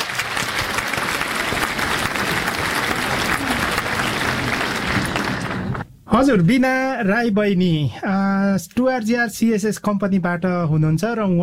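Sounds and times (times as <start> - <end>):
audience applause: 0.0 - 5.9
speech: 6.2 - 11.4.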